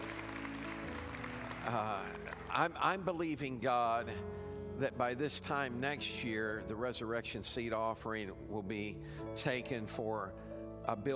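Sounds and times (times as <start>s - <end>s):
congregation at Christ Community church applauding: 0.0s - 3.1s
speech: 1.7s - 11.1s.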